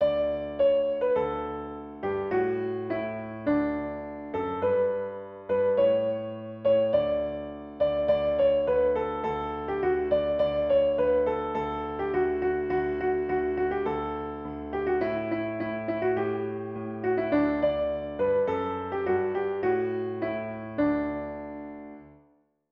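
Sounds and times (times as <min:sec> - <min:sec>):
piano: 0:00.0 - 0:22.4.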